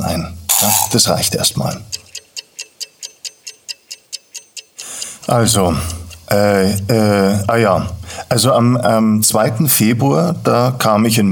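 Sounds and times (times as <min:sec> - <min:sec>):
speech: 0:00.2 - 0:02.1, 0:05.3 - 0:11.3
egg timer ticking: 0:00.5 - 0:08.2.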